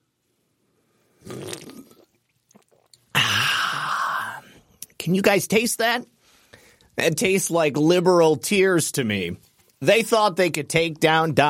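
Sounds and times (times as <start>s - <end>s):
person sipping a drink: 1.1s - 4.9s
speech: 5.0s - 6.2s, 7.0s - 11.4s.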